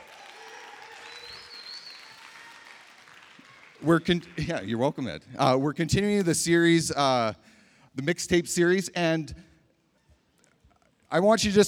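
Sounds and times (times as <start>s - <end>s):
audience cheering and applauding: 0.0s - 4.4s
speech: 3.8s - 9.5s, 11.1s - 11.6s.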